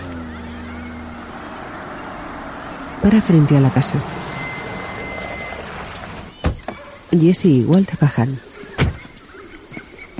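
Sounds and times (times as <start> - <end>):
Vámonos Pest pickup truck approaching: 0.0 - 6.4
speech: 3.0 - 4.2, 7.1 - 8.5.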